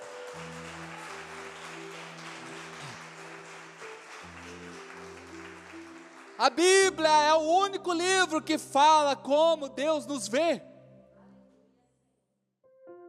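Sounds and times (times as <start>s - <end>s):
audience applauding loudly: 0.0s - 8.0s
speech: 6.4s - 10.7s.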